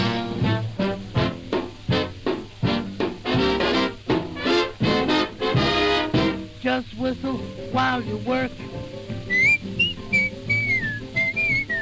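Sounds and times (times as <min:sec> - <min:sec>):
lively instrumental music: 0:00.0 - 0:11.8
speech: 0:06.7 - 0:08.7
person whistling a bright melodic tune: 0:09.3 - 0:11.8.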